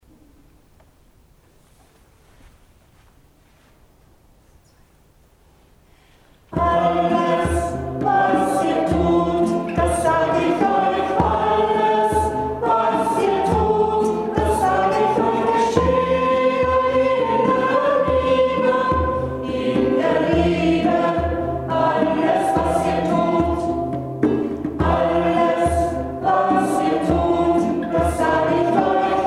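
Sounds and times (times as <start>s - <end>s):
choir singing in unison: 6.5s - 29.2s.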